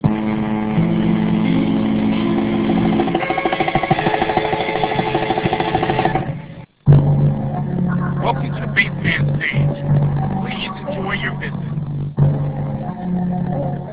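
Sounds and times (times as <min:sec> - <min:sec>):
bass: 0:00.0 - 0:13.9.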